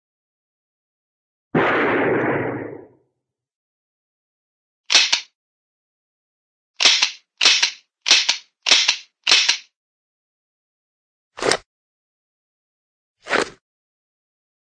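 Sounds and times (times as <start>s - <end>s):
cartoon handgun single gunshot: 1.6s - 3.0s, 4.9s - 5.3s, 6.8s - 9.7s.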